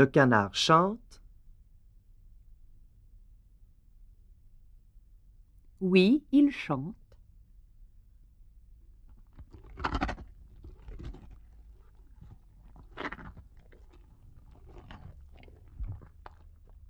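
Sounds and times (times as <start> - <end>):
speech: 0.0 - 1.1, 5.8 - 7.0
tiger eating, chewing and crunching: 8.8 - 16.8.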